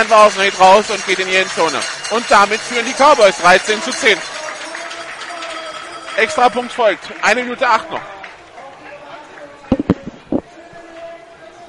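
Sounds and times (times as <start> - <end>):
speech: 0.0 - 4.4, 6.2 - 8.1
mobile phone knocking against a microphone: 9.7 - 10.5.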